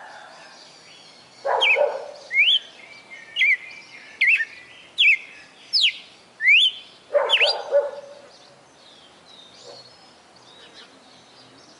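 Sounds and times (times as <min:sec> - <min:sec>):
female red-cowled cardinal singing in Fortaleza-CE: 0:01.5 - 0:07.7.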